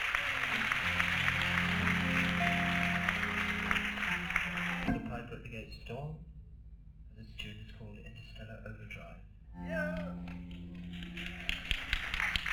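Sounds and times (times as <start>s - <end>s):
instrument tuning: 0.2s - 5.3s, 9.6s - 12.3s.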